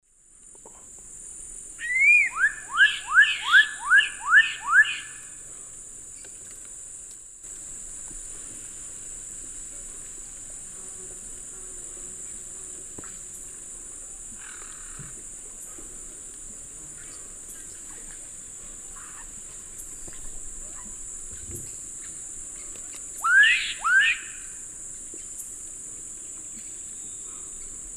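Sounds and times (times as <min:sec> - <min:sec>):
black-capped donacobius Donacobius atricapilla whistled calls: 0:01.8 - 0:05.2, 0:23.2 - 0:24.5.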